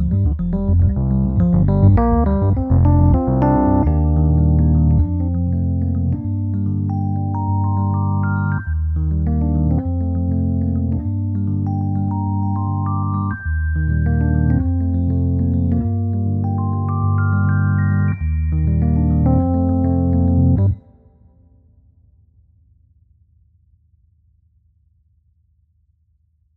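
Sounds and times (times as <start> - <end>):
warm Rhodes electric piano: 0.0 - 20.8.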